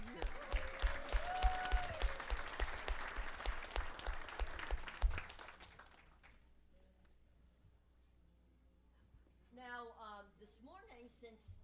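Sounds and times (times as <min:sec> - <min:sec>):
crowd applauding: 0:00.0 - 0:06.4.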